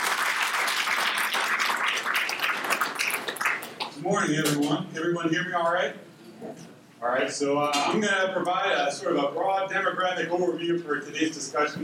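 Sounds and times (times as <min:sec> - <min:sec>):
audience applause: 0:00.0 - 0:03.9
speech: 0:04.1 - 0:11.8.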